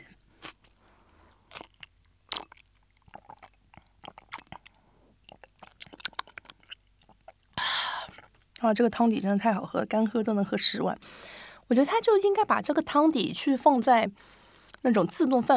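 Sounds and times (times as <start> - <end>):
chewing Chinese cabbage cooked in hot pot soup: 0.0 - 8.6
speech: 8.6 - 15.5.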